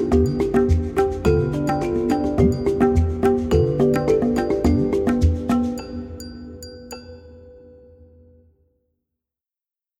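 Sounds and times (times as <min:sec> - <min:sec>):
groovy mambo percussion music: 0:00.0 - 0:07.5.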